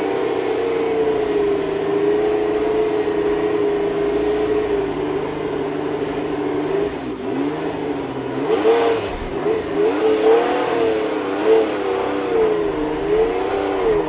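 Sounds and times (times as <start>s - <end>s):
Ferrari 312T3 racing car engine: 0.0s - 14.0s.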